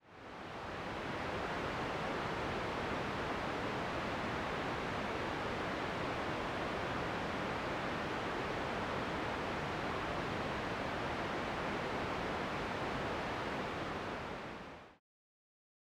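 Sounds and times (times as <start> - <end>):
waterfall: 0.1 - 15.0.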